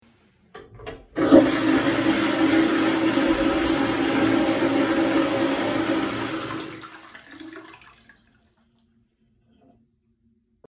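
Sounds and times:
toilet flushing: 1.2 - 8.3.

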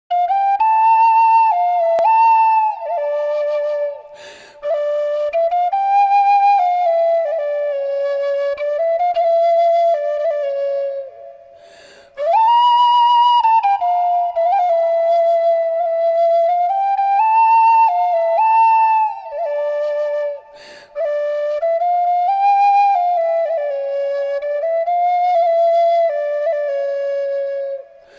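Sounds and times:
sopilka flute: 0.1 - 28.1.

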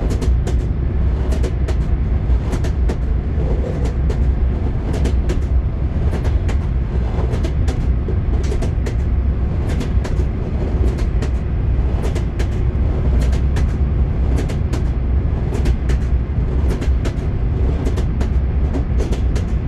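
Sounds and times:
train wheels knocking: 0.0 - 19.6.

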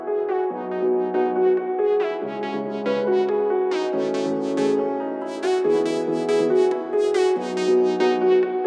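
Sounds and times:
chillstep music: 0.2 - 8.5.

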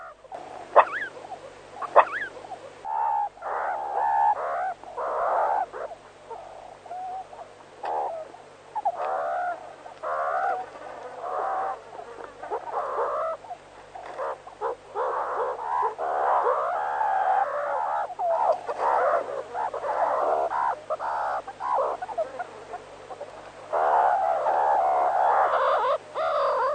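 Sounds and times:
meerkat pack: 0.0 - 26.7.

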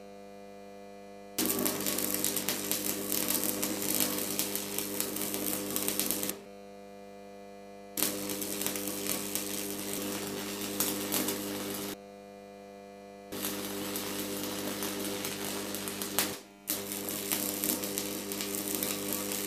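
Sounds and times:
welding: 1.4 - 6.4, 8.0 - 12.0, 13.3 - 19.4.

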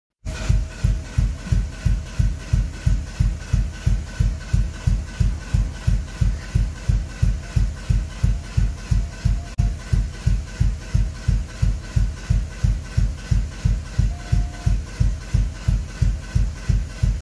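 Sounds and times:
engine exhaust idling: 0.2 - 17.1.

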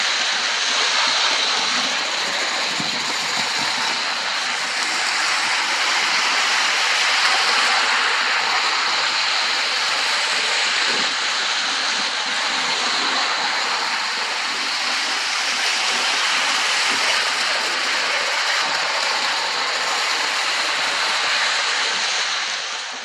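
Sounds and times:
toy train running on rails: 0.0 - 23.0.

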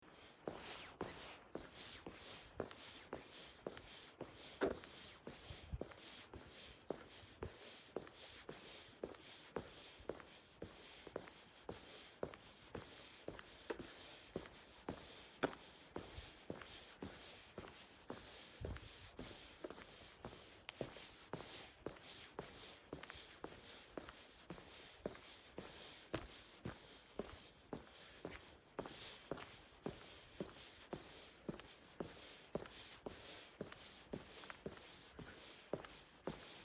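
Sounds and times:
footsteps on asphalt in a jacket: 0.1 - 36.6.

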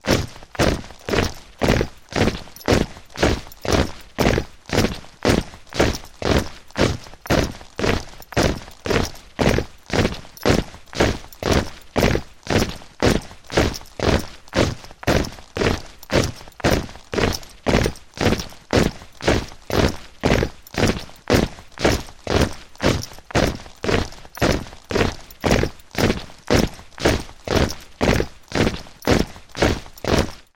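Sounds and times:
soldiers marching: 0.0 - 30.5.

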